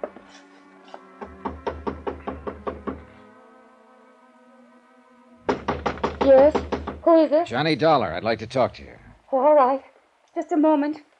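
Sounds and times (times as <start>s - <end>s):
knocking on an apartment door: 1.2s - 3.1s, 5.5s - 7.1s
speech: 6.3s - 11.1s.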